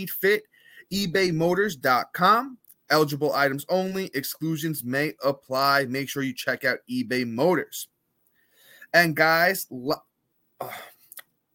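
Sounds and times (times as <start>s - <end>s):
speech: 0.0s - 7.9s, 8.9s - 10.9s
person clearing throat: 10.6s - 11.1s.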